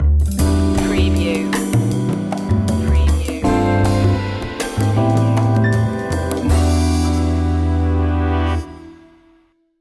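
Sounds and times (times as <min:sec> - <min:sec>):
jazzy opener music: 0:00.0 - 0:09.7.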